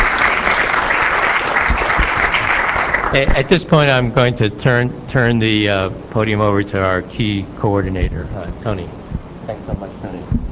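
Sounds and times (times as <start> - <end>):
audience applause at an institute ceremony: 0.0 - 3.6
speech: 3.1 - 10.4.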